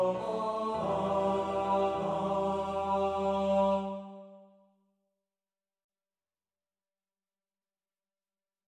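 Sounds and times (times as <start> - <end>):
baritone singing an anthem: 0.0 - 4.0.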